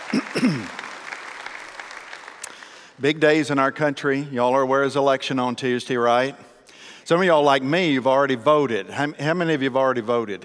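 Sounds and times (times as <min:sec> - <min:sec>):
church congregation clapping to welcome guests at a morning service: 0:00.0 - 0:03.4
speech: 0:00.1 - 0:00.8, 0:03.0 - 0:06.5, 0:07.1 - 0:10.4.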